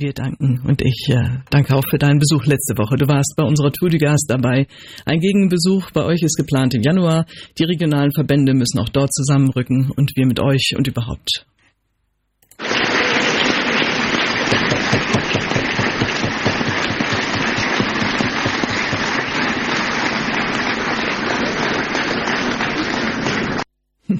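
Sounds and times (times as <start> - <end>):
speech: 0.0 - 11.6
applause at NABU federal delegates assembly in Mainz: 12.6 - 23.7.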